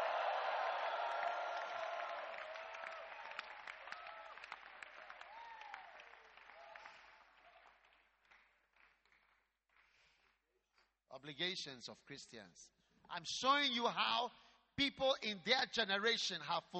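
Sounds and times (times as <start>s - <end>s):
audience clapping: 0.0s - 10.9s
speech: 11.2s - 16.7s.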